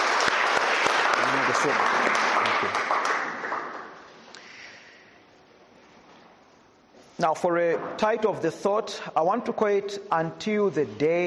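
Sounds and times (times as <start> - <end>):
church audience clapping as guests take their seats: 0.0 - 4.2
speech: 1.6 - 2.8, 7.2 - 11.2.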